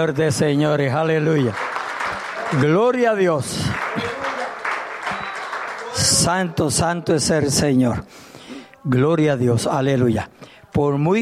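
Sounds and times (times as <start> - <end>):
speech: 0.0 - 1.7, 2.5 - 4.3, 6.0 - 11.1
audience applause: 1.0 - 7.3
indistinct voices and shouts: 3.8 - 7.5.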